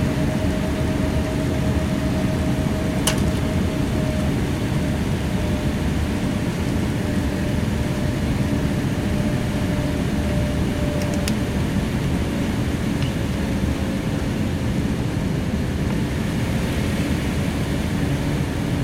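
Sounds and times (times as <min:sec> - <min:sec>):
Airbus A340 commercial aircraft interior ambience on final approach: 0:00.0 - 0:18.8.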